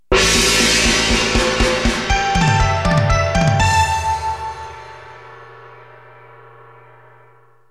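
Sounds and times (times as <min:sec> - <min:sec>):
Chinese jingle: 0:00.2 - 0:05.5.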